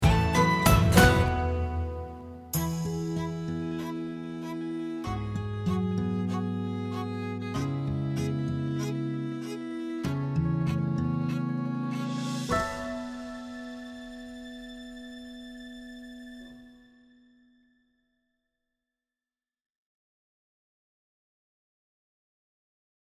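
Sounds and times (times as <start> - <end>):
instrumental music: 0.0 - 17.3.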